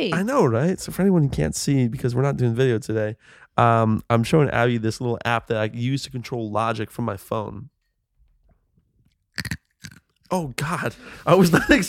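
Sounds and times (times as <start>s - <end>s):
speech: 0.0s - 7.7s, 9.4s - 11.8s
chomping on ice: 9.4s - 10.0s.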